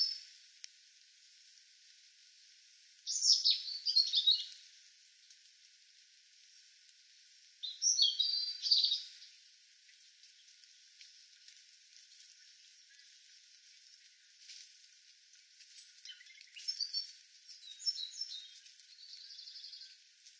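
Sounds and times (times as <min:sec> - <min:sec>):
European robin Erithacus rubecula singing high tinkling phrases: 0:03.1 - 0:04.5, 0:07.6 - 0:09.3, 0:15.6 - 0:20.0.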